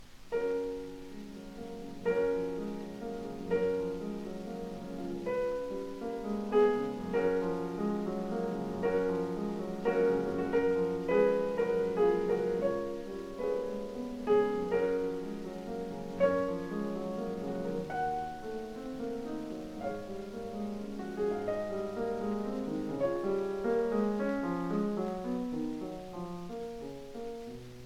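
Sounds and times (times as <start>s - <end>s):
classical prelude in F-sharp major: 0.0s - 27.8s.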